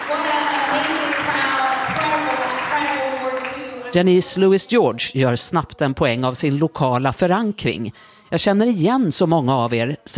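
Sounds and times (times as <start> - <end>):
audience applauding in a church: 0.0 - 4.0
speech: 3.9 - 10.1.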